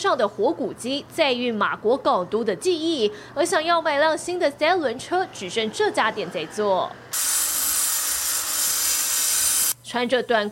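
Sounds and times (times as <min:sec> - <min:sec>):
speech: 0:00.0 - 0:07.4, 0:09.9 - 0:10.5
metal being ground and welded: 0:07.1 - 0:09.8.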